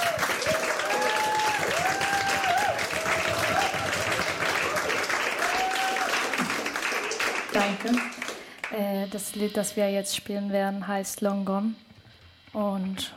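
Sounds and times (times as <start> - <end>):
audience applauding: 0.0 - 8.8
speech: 7.6 - 11.9, 12.5 - 13.1.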